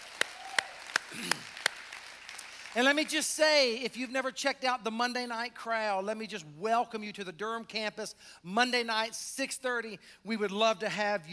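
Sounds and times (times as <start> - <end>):
audience applause: 0.0 - 3.1
speech: 1.1 - 1.5, 2.8 - 11.3.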